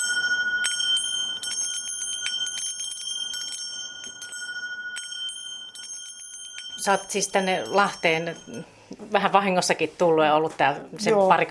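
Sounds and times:
small bells ringing: 0.0 - 8.9
speech: 6.8 - 11.4.

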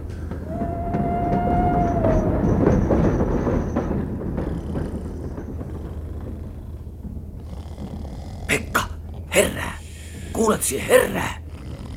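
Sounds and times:
train wheels squealing: 0.0 - 7.0
express train rolling on rails: 0.0 - 11.4
speech: 10.6 - 11.4.

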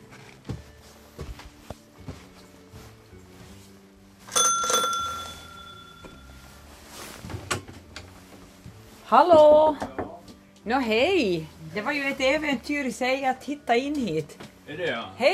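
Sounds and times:
old railway station bell being rung: 4.3 - 6.5
speech: 9.1 - 9.9, 10.6 - 15.3.

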